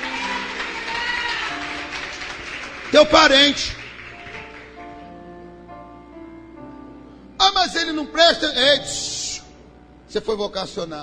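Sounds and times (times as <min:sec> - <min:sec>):
audience applauding: 0:00.0 - 0:05.1
speech: 0:02.9 - 0:03.8, 0:07.9 - 0:09.2, 0:10.1 - 0:11.0.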